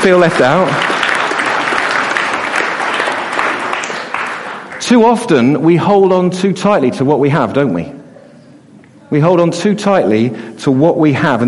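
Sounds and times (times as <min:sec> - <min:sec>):
speech: 0:00.0 - 0:00.9, 0:04.9 - 0:08.0, 0:09.1 - 0:11.4
audience applause: 0:00.0 - 0:05.1.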